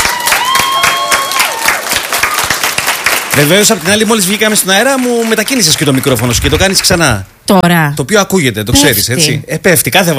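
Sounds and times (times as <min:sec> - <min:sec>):
applause: 0:00.0 - 0:07.0
speech: 0:03.4 - 0:10.1.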